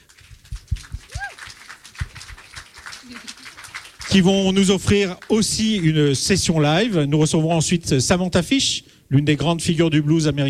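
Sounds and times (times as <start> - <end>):
crowd clapping: 0.0 - 6.4
voices cheering: 1.0 - 5.9
speech: 4.1 - 10.4.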